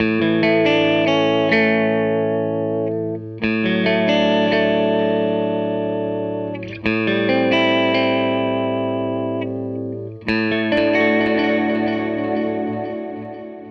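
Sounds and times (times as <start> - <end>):
guitar loop: 0.0 - 13.7.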